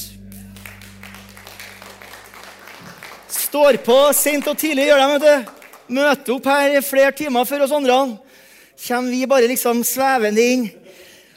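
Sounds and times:
audience applause: 0:00.6 - 0:06.4
speech: 0:03.5 - 0:08.2, 0:08.8 - 0:10.8.

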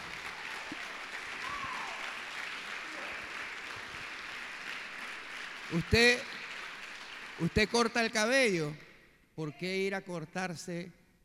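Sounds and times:
audience applause: 0:00.0 - 0:07.8
speech: 0:05.7 - 0:06.4, 0:07.4 - 0:11.0.

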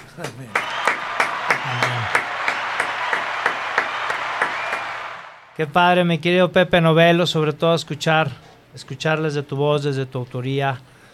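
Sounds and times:
applause: 0:00.0 - 0:05.5
speech: 0:00.2 - 0:00.8, 0:05.6 - 0:10.9.

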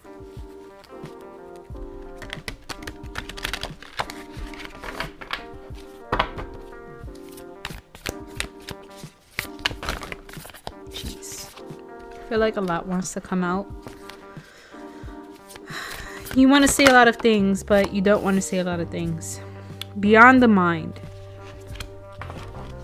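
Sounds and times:
tarot cards shuffling: 0:00.5 - 0:18.6, 0:21.0 - 0:22.8
speech: 0:12.3 - 0:13.9, 0:16.4 - 0:21.0.

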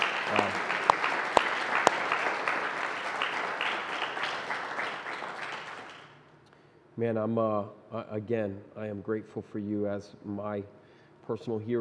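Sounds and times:
audience applause: 0:00.0 - 0:06.2
speech: 0:07.0 - 0:11.8.

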